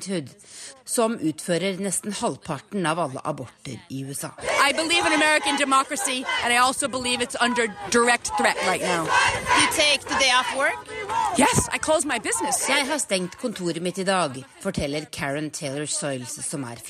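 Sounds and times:
speech: 0.0s - 16.8s
women protesters chanting: 4.3s - 16.8s.

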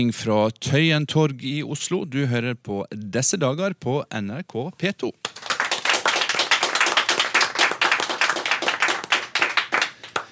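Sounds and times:
speech: 0.0s - 5.5s
studio audience clapping: 5.2s - 10.2s.

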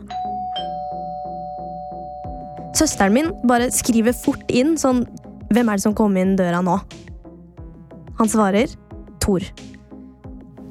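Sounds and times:
melodic doorbell chime: 0.0s - 4.0s
speech: 2.8s - 7.1s, 8.2s - 9.7s.

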